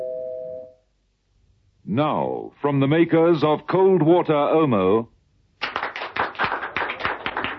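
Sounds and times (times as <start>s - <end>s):
speech: 1.9s - 5.1s
small group clapping in an embassy reception room after a dance performance: 5.6s - 7.5s.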